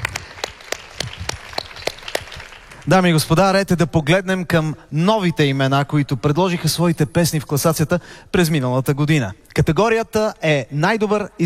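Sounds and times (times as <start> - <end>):
audience applause at a music awards ceremony: 0.0 - 3.3
speech: 2.9 - 11.4.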